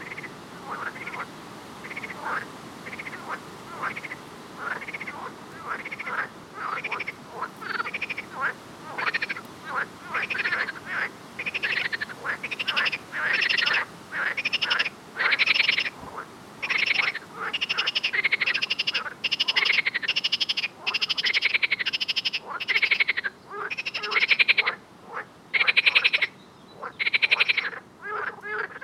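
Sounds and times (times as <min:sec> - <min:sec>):
frog: 0:00.0 - 0:28.8.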